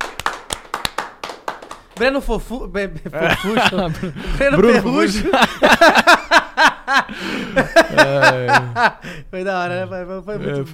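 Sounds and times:
round of hand claps: 0.0 - 2.2
speech: 2.0 - 10.7
laughter: 3.0 - 9.2.

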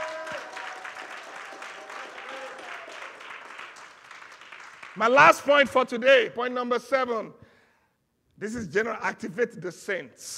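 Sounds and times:
audience applause during a church sermon: 0.0 - 5.2
speech: 5.0 - 7.4, 8.4 - 10.3.

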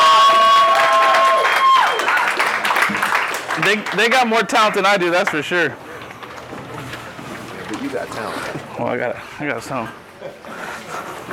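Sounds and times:
audience applauding: 0.0 - 6.5
crowd cheering: 0.0 - 6.6
speech: 3.7 - 5.9, 7.8 - 10.6.

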